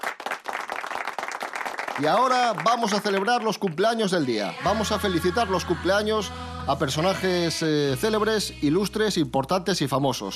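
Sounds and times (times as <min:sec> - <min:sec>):
applause: 0:00.0 - 0:04.3
speech: 0:02.0 - 0:10.3.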